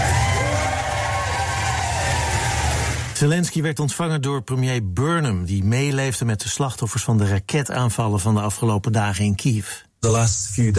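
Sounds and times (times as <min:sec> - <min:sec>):
large crowd cheering and roaring: 0:00.0 - 0:03.2
speech: 0:03.2 - 0:10.7.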